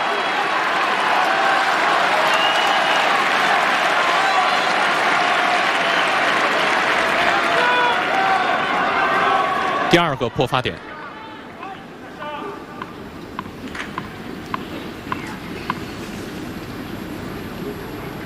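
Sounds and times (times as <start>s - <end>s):
crowd of spectators applauding at a tennis match: 0.0s - 10.7s
speech: 9.9s - 10.9s.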